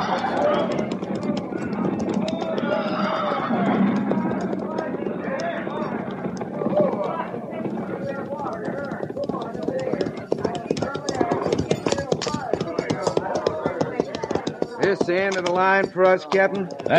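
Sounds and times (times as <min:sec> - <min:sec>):
many horses' hooves clip-clopping to halt: 0:00.0 - 0:16.9
speech: 0:15.1 - 0:16.9.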